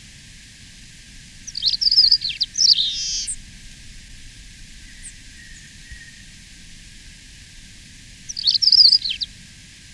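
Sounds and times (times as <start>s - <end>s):
Paramo Pipit song twittering: 1.5s - 3.4s, 8.3s - 9.3s.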